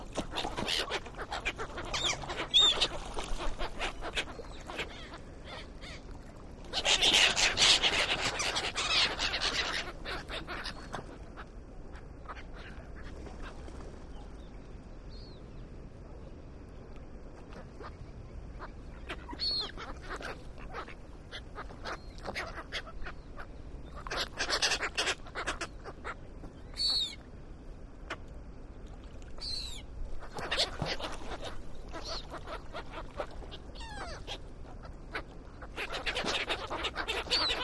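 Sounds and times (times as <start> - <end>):
seagulls fighting at a lake: 0.2 - 6.0, 6.7 - 11.2, 19.0 - 26.2, 29.4 - 37.6.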